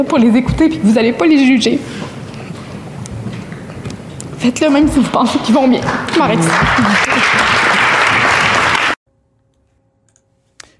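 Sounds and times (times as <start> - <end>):
speech: 0.0 - 2.2, 4.4 - 7.6
standing ovation applause from elected officials: 5.6 - 9.0
laughter: 5.9 - 8.8.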